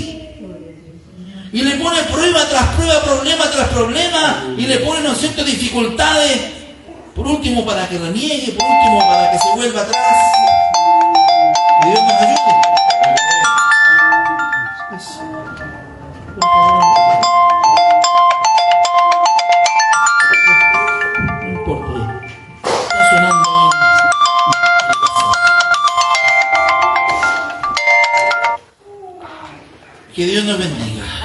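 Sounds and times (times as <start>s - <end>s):
speech: 1.5s - 6.6s, 7.2s - 10.6s, 11.8s - 12.8s, 14.9s - 15.6s, 30.2s - 30.9s
mobile phone ringtone: 8.6s - 28.6s.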